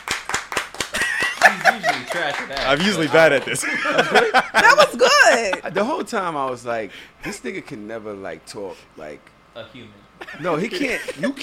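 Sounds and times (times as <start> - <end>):
hand clapping: 0.0 - 3.6
laughter: 0.9 - 6.0, 10.2 - 11.4
speech: 2.1 - 11.4.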